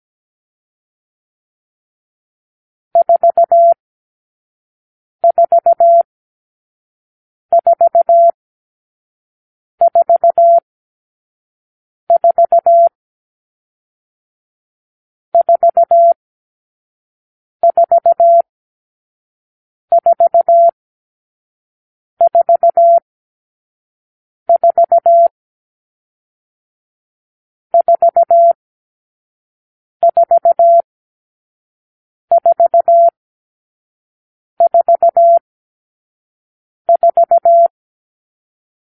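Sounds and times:
morse code beeps: 0:03.0 - 0:03.8, 0:05.2 - 0:06.0, 0:07.5 - 0:08.4, 0:09.8 - 0:10.6, 0:12.1 - 0:12.9, 0:15.4 - 0:16.2, 0:17.6 - 0:18.4, 0:19.9 - 0:20.8, 0:22.2 - 0:23.0, 0:24.5 - 0:25.3, 0:27.8 - 0:28.6, 0:30.1 - 0:30.9, 0:32.3 - 0:33.2, 0:34.6 - 0:35.4, 0:36.9 - 0:37.7.

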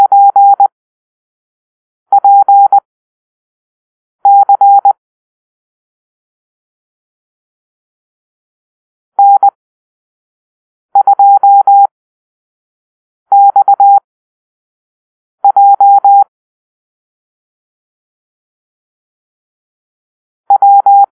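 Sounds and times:
morse code beeps in a call-sign drill: 0:00.0 - 0:00.7, 0:02.1 - 0:02.8, 0:04.3 - 0:05.0, 0:09.2 - 0:09.6, 0:11.0 - 0:11.9, 0:13.3 - 0:14.0, 0:15.4 - 0:16.2, 0:20.5 - 0:21.1.

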